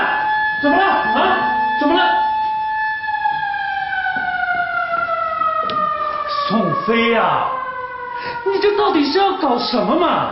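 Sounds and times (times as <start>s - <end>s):
alarm siren sound effect: 0.0s - 10.3s
speech: 0.6s - 0.9s, 6.9s - 7.6s, 8.4s - 10.3s.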